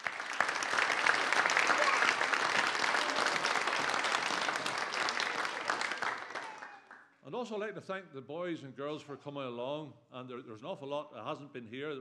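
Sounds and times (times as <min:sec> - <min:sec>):
audience applause: 0:00.0 - 0:07.0
speech: 0:07.4 - 0:11.9.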